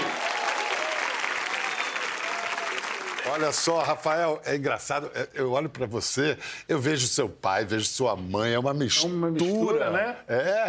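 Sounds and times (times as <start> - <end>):
audience applauding: 0.0 - 3.8
speech: 3.3 - 10.6.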